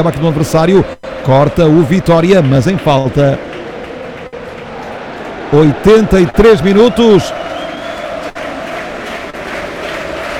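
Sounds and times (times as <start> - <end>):
speech: 0.0 - 3.5, 5.5 - 7.5
Benfica football fans cheering their team in a stadium: 0.1 - 10.3.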